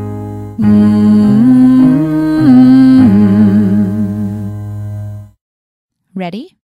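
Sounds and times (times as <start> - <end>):
person humming: 0.6 - 4.6.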